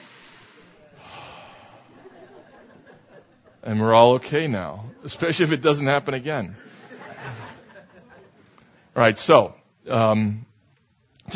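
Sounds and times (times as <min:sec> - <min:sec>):
church congregation taking a deep breath together: 0:00.0 - 0:02.9
laughter: 0:01.6 - 0:03.6, 0:06.5 - 0:08.8
speech: 0:03.6 - 0:07.4, 0:09.0 - 0:10.5.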